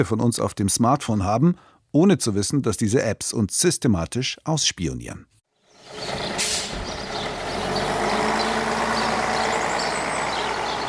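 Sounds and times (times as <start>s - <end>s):
speech: 0.0s - 6.2s
bus diesel engine idling at a bus stop: 5.8s - 10.8s
bus air brakes hissing: 6.4s - 7.0s.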